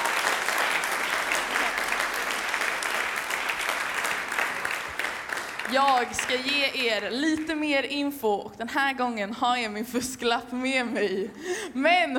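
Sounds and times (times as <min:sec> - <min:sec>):
audience applause: 0:00.0 - 0:06.9
speech: 0:05.7 - 0:12.1.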